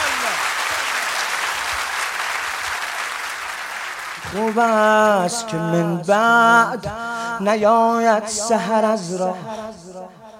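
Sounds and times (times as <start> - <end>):
audience applause: 0.0 - 5.4
speech: 4.3 - 9.8.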